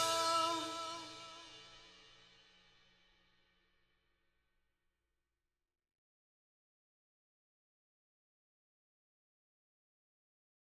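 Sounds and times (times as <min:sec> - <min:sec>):
drums: 0:00.0 - 0:03.2.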